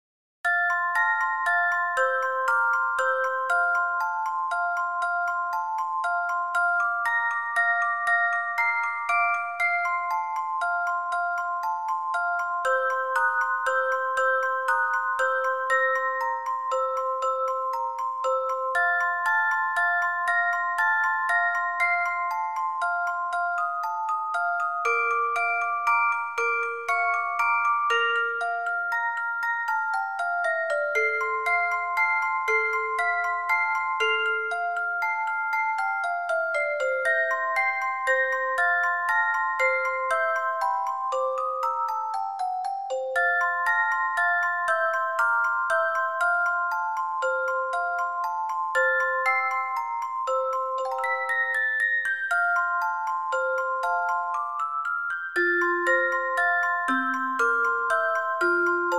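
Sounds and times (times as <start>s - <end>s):
lullaby: 0.4s - 58.9s.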